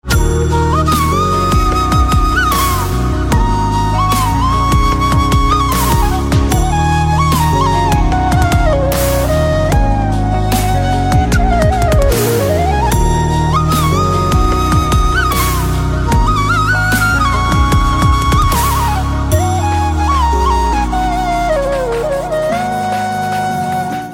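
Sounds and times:
flute instrumental ringtone: 0.1 - 24.1.

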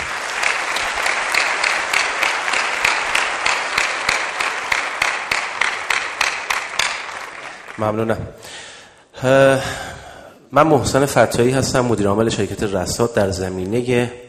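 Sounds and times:
audience clapping at an IT networking gathering: 0.0 - 8.1
speech: 7.8 - 9.9, 10.5 - 14.2.

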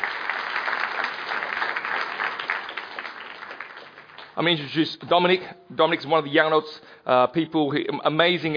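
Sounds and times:
audience applause: 0.0 - 4.6
speech: 4.4 - 8.5.

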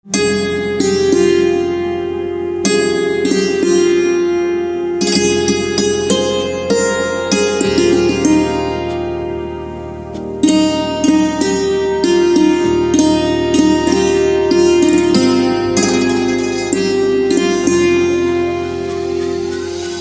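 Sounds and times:
santoor instrumental ringtone: 0.0 - 19.9.

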